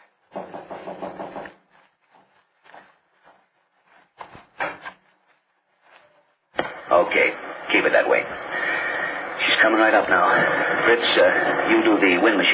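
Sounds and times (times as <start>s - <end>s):
footsteps coming in: 0.0s - 9.0s, 9.8s - 12.2s
knock on door: 0.3s - 1.6s
speech: 7.0s - 8.5s, 9.6s - 12.5s.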